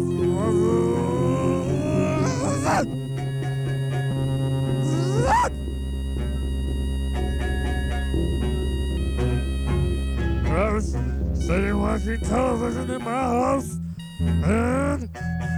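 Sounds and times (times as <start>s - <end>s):
moped going past: 0.0s - 11.6s
speech: 12.0s - 15.1s.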